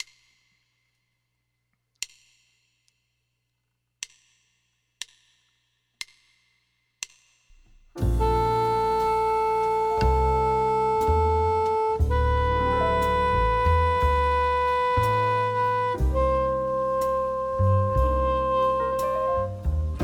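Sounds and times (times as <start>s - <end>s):
B-flat soprano clarinet: 8.0s - 20.0s.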